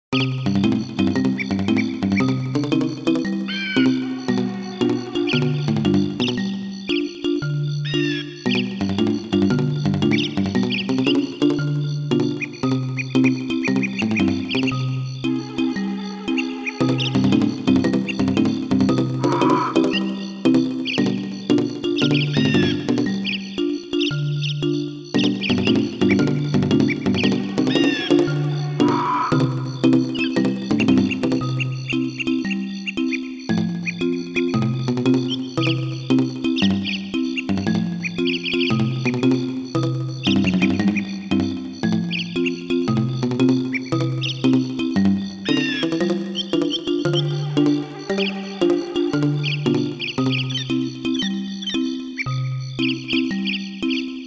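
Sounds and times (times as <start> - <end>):
summer ambience inside the treetops: 0.2 - 54.1.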